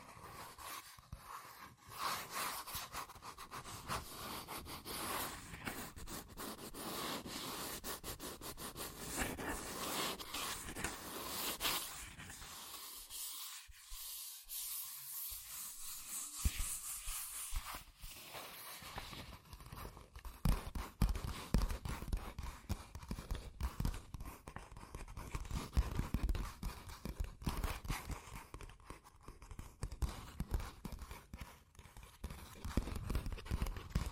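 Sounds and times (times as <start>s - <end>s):
fast tapping, scratching and tracing on cardboard and paper: 0.0s - 34.1s.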